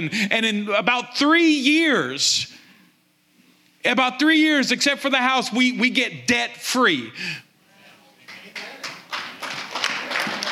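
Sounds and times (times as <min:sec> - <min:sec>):
speech: 0:00.0 - 0:02.6, 0:03.8 - 0:07.5
church congregation clapping: 0:08.2 - 0:10.4.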